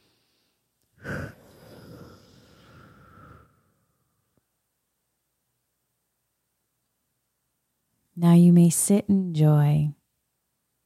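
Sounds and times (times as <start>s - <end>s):
deep breath inhaling through the nose and exhaling through the mouth: 0.0s - 4.4s
speech: 8.2s - 10.0s.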